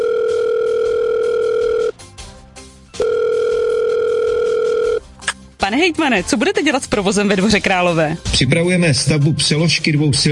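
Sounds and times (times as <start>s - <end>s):
telephone call ringing tone: 0.0s - 2.0s, 3.0s - 5.0s
speech: 5.8s - 10.3s.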